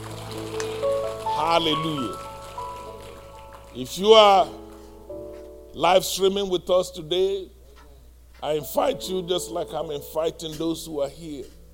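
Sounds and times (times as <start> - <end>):
audience applause: 0.0 - 4.8
speech: 1.4 - 2.3, 3.7 - 4.6, 5.8 - 7.6, 8.4 - 11.6.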